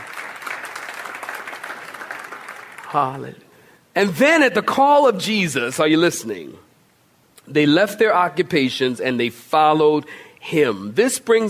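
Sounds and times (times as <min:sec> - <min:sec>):
audience clapping: 0:00.0 - 0:03.3
speech: 0:02.9 - 0:06.7, 0:07.4 - 0:11.4.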